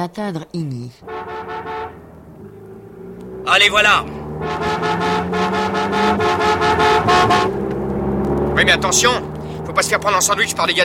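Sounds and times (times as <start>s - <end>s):
speech: 0.0s - 2.0s, 3.4s - 7.6s, 8.6s - 10.8s
rapid pulsing rhythm of bursts: 1.0s - 7.6s
car horns blaring during a car chase: 1.0s - 10.8s.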